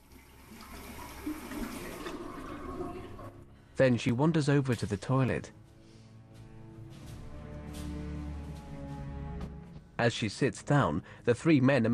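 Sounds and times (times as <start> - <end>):
water running from a bathroom tap: 0.0 - 3.4
speech: 3.8 - 5.6, 10.0 - 11.9.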